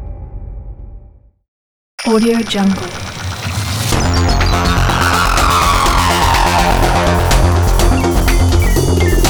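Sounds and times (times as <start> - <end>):
aggressive tech logo sting: 2.0 - 9.2.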